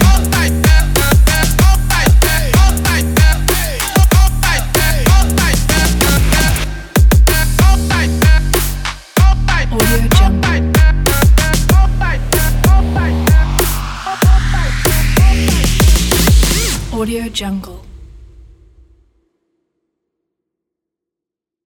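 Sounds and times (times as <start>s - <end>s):
trap beat: 0.0s - 17.0s.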